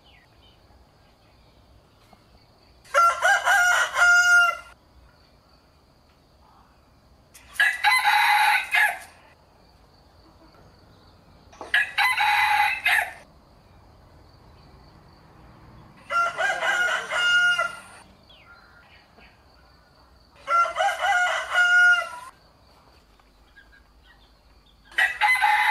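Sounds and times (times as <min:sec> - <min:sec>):
rooster crowing: 0:02.9 - 0:04.8, 0:07.6 - 0:09.2, 0:11.6 - 0:13.2, 0:16.0 - 0:18.0, 0:20.4 - 0:22.3, 0:24.9 - 0:25.6.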